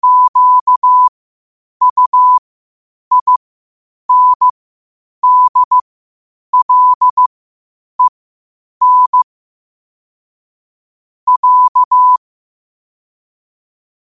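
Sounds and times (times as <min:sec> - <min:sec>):
morse code at 5 wpm: 0:00.0 - 0:01.1, 0:01.8 - 0:02.4, 0:03.1 - 0:03.4, 0:04.1 - 0:04.5, 0:05.2 - 0:05.8, 0:06.6 - 0:07.3, 0:08.8 - 0:09.3, 0:11.3 - 0:12.2.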